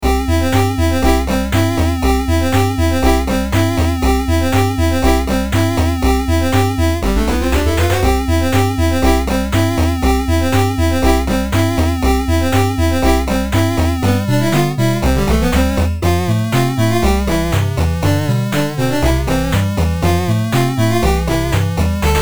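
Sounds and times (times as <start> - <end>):
Famicom chiptune loop: 0.0 - 22.2.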